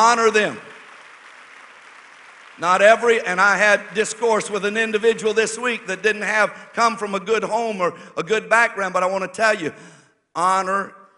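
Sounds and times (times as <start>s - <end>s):
speech: 0.0s - 0.7s, 2.6s - 11.0s
audience clapping: 0.0s - 6.5s.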